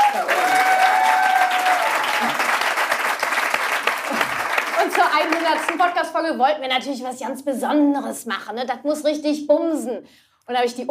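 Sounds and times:
audience applause: 0.0 - 6.0
speech: 5.2 - 10.8.

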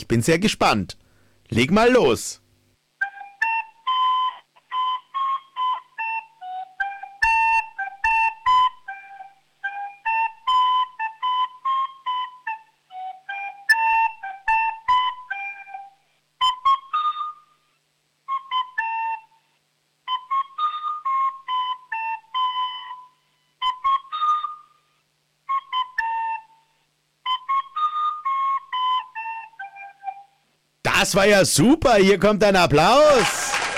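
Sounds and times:
speech: 0.0 - 2.4, 31.1 - 33.6
child playing a lively dance tune on a recorder-like flute: 3.0 - 17.5, 18.3 - 19.4, 20.1 - 24.8, 25.4 - 30.4.

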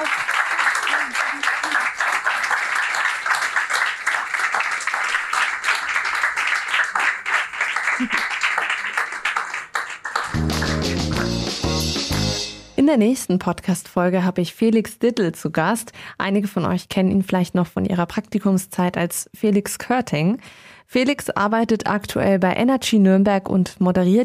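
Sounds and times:
applause for guests: 0.0 - 12.0
speech: 8.0 - 8.2, 12.9 - 24.2.

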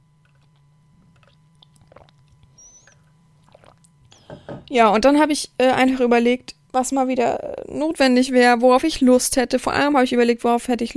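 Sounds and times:
person drinking a sip: 0.2 - 4.7
speech: 4.7 - 10.9.

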